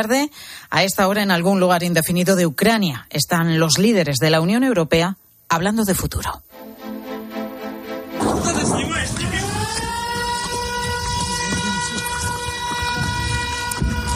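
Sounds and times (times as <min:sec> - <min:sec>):
speech: 0:00.0 - 0:06.7
air raid sirens in Ukraine: 0:07.7 - 0:14.1.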